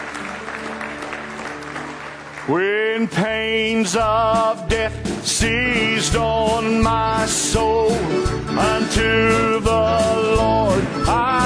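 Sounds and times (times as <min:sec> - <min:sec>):
congregation clapping hands in praise during a church service: 0:00.0 - 0:03.2
speech: 0:02.5 - 0:11.4.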